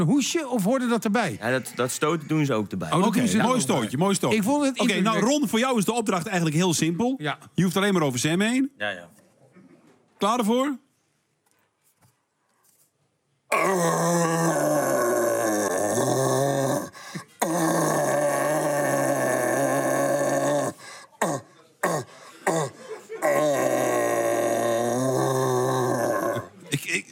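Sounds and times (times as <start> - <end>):
speech: 0.0 - 9.2, 10.2 - 10.8, 13.5 - 15.1
human voice imitating a rutting deer's roar: 13.5 - 26.6.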